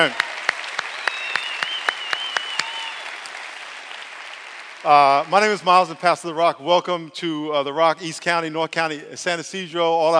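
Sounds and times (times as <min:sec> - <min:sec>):
speech: 0:00.0 - 0:00.3, 0:04.8 - 0:10.1
clapping in a church service: 0:00.0 - 0:06.4.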